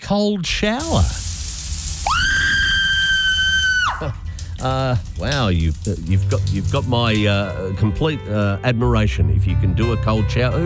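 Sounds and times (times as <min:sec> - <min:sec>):
speech: 0:00.1 - 0:01.3, 0:04.0 - 0:10.6
low rumbling background: 0:01.2 - 0:09.8
loud high-pitched scream: 0:02.0 - 0:04.1.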